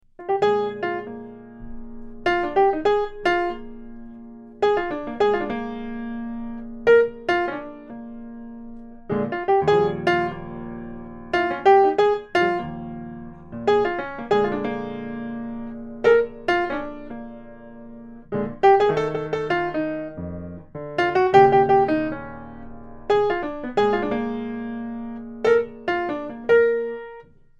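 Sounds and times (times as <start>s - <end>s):
blues music: 0.2s - 27.3s.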